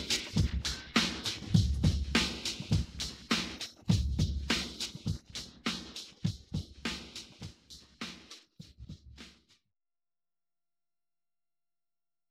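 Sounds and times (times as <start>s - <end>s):
drums: 0.0s - 9.6s.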